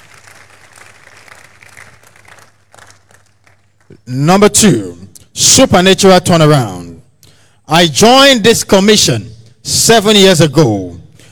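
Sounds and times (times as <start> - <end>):
audience clapping: 0.0 - 4.0
speech: 3.9 - 6.8, 7.7 - 11.3.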